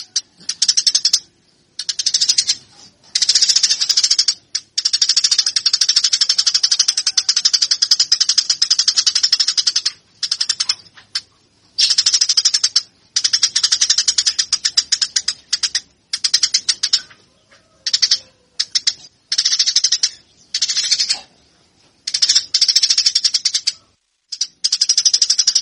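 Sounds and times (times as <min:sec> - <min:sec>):
Eurasian tree sparrow chirping: 0:00.0 - 0:25.5.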